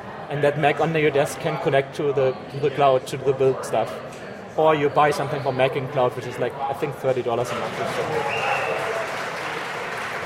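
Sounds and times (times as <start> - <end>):
faint murmur of voices: 0.0 - 10.2
speech: 0.3 - 8.6
audience clapping from neighboring presentation: 7.5 - 10.2.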